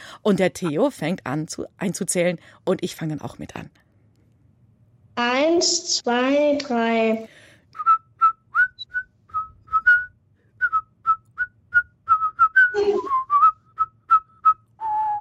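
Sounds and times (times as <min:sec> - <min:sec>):
speech: 0:00.2 - 0:03.8, 0:05.2 - 0:07.4
whistled children's song melody: 0:07.8 - 0:15.1.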